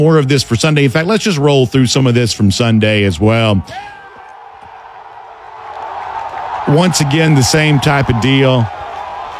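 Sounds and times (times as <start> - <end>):
speech: 0.0 - 4.0, 6.7 - 8.8
Georgia baseball crowd cheering a home run on Kudzu Hill: 0.7 - 9.3.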